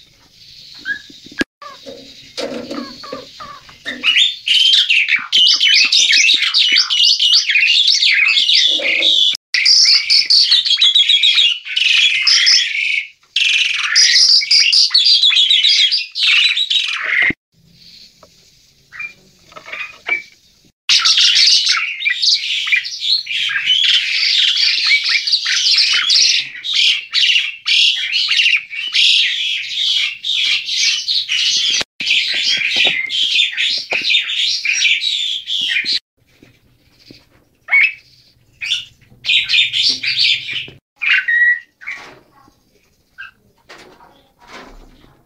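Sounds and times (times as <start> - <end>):
male Asian pied starling chirping: 0.0 - 43.5.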